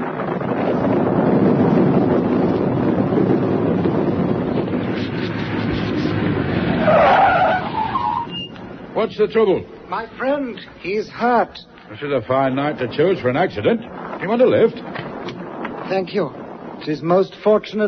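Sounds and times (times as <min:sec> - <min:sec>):
car engine rumble: 0:00.0 - 0:17.6
car tires skidding to a stop: 0:03.8 - 0:08.6
speech: 0:09.0 - 0:14.9, 0:15.9 - 0:17.8.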